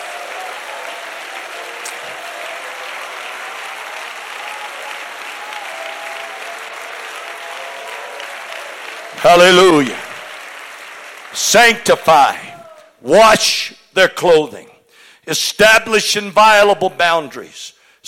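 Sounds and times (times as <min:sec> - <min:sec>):
audience clapping hands: 0:00.0 - 0:13.0
speech: 0:09.2 - 0:10.0, 0:11.5 - 0:18.0.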